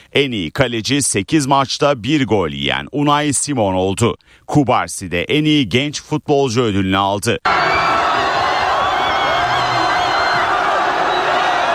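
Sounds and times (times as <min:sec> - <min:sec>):
speech: 0:00.2 - 0:08.0
Spanish football fans roaring and cheering after a World Cup final win: 0:07.4 - 0:11.7.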